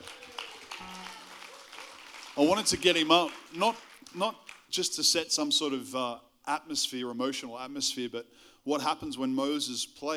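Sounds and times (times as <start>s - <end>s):
audience applause: 0.0s - 4.6s
speech: 2.4s - 10.1s.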